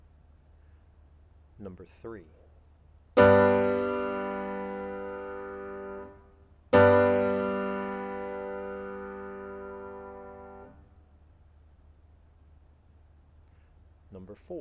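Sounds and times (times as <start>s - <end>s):
chords: 3.2s - 10.9s.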